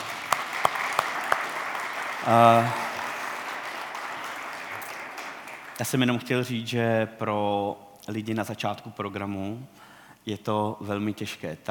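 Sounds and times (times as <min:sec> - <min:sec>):
scattered audience claps: 0:00.0 - 0:06.0
speech: 0:02.2 - 0:02.8, 0:05.8 - 0:11.7.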